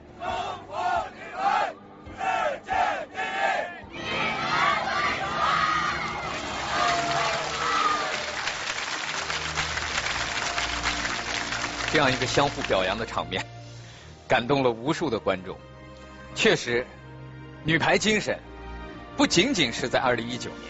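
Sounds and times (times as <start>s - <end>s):
parade formation shouting slogan in unison: 0.0s - 7.9s
crowd cheering: 0.0s - 12.8s
speech: 12.0s - 13.6s, 14.3s - 15.7s, 16.4s - 17.0s, 17.6s - 18.5s, 19.2s - 20.6s.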